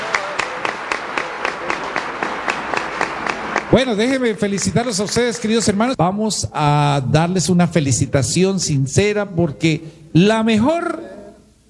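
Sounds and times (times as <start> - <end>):
audience applause with rhythmic claps: 0.0 - 5.0
speech: 3.8 - 11.0.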